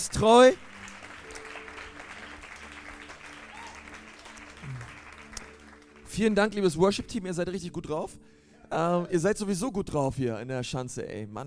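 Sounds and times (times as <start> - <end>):
speech: 0.0 - 0.7, 6.2 - 11.4
audience applause: 0.0 - 6.1.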